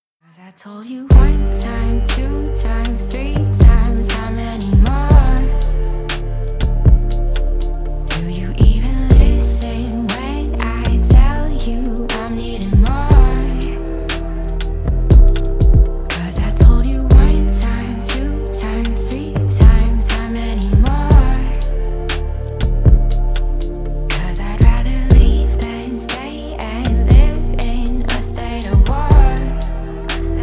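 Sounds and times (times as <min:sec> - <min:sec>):
hip hop music: 0:01.1 - 0:30.4.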